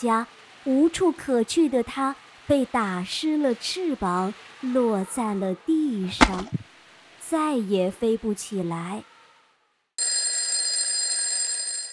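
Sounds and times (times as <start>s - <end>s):
speech: 0.0s - 6.6s, 7.3s - 9.1s
alarm clock ringing: 10.0s - 11.9s.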